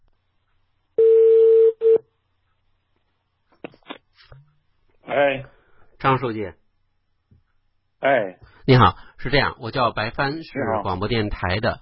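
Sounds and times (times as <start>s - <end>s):
telephone line tone: 1.0s - 2.0s
speech: 5.1s - 6.6s, 8.0s - 11.8s.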